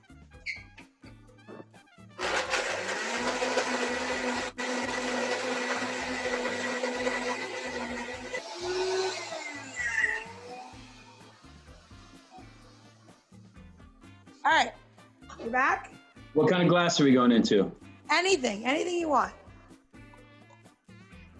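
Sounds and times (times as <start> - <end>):
blender blending a drink: 2.2 - 13.4
speech: 15.5 - 19.4.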